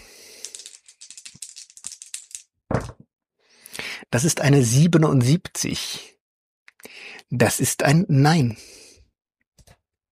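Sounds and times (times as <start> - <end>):
dice being rolled: 0.0 - 3.0
speech: 4.1 - 6.1, 7.3 - 8.8.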